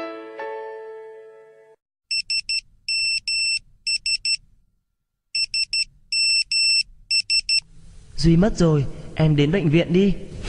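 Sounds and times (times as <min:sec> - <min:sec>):
phone bright electronic ringtone for an incoming call: 0:02.1 - 0:04.4, 0:05.4 - 0:07.6
speech: 0:08.2 - 0:10.4.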